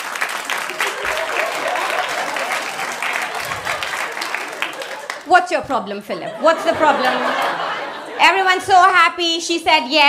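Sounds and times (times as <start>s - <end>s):
people clapping: 0.0s - 5.5s
laughter: 0.6s - 5.3s, 5.9s - 8.4s
speech: 5.3s - 7.5s, 8.2s - 10.0s.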